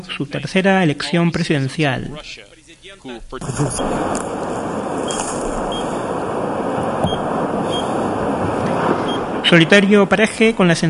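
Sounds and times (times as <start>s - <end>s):
speech: 0.0s - 5.5s, 9.5s - 10.8s
radioactivity sensor beeping: 3.8s - 8.4s, 9.0s - 9.7s.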